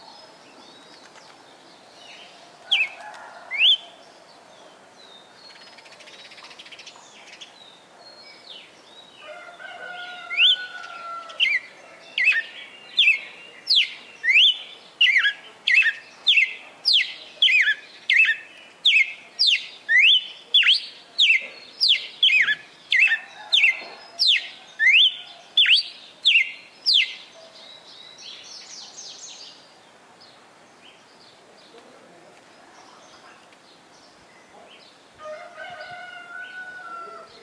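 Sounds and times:
Red-cowled cardinal song: 11.4s - 27.2s.

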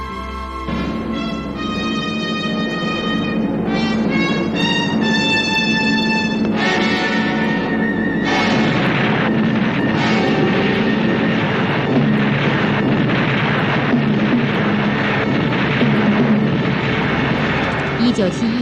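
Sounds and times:
Trident jet crash explosion at Öndörkhaan Mongolia: 0.5s - 18.6s
voices: 17.5s - 18.6s.

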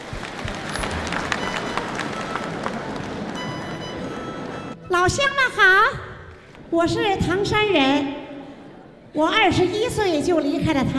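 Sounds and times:
crowd applauding a guest: 0.0s - 4.8s
speech: 5.0s - 6.0s, 6.7s - 8.2s, 9.2s - 10.9s.

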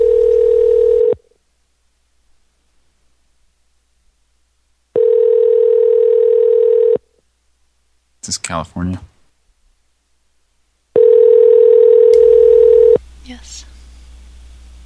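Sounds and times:
telephone tone on an outgoing call: 0.0s - 1.2s, 5.0s - 7.0s, 11.0s - 13.0s
speech: 8.3s - 9.2s.

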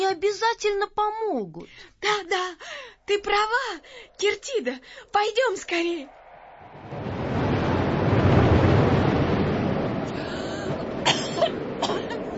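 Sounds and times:
speech: 0.1s - 6.2s
strong howling wind stirring up dust: 3.2s - 12.3s.

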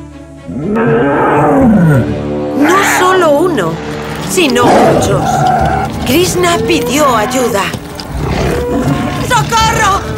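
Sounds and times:
speech: 0.5s - 1.0s, 3.6s - 7.9s
tiger roaring: 0.5s - 3.4s, 4.4s - 9.3s.

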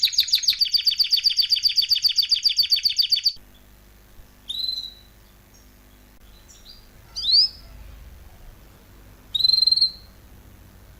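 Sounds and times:
canary singing: 0.0s - 10.9s.

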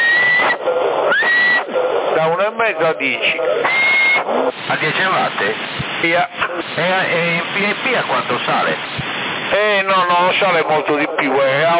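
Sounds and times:
steady tone whistled into a CB radio microphone in Sassari: 0.0s - 1.8s, 3.4s - 4.3s
thin hissy CB radio channel: 0.0s - 11.7s
speech: 3.0s - 3.6s, 4.8s - 11.7s.

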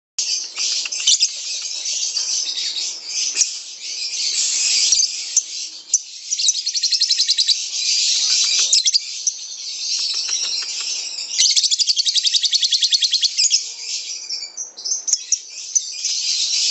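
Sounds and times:
lovebird song: 0.2s - 16.6s.

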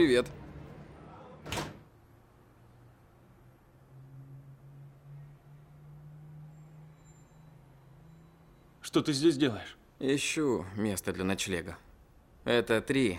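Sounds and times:
speech: 0.0s - 0.4s, 8.9s - 13.1s
building entrance door opening: 1.4s - 1.9s.

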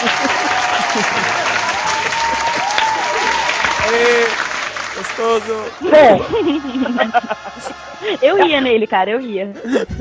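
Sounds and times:
applause: 0.0s - 5.9s
laughter: 0.0s - 9.9s
speech: 5.2s - 9.9s.

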